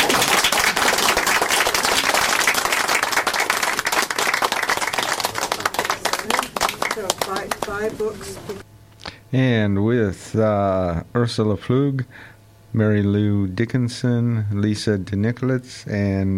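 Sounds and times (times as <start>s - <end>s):
audience applause for visiting authors after a book event Q&A: 0.0s - 8.6s
speech: 7.7s - 8.7s, 9.3s - 16.3s.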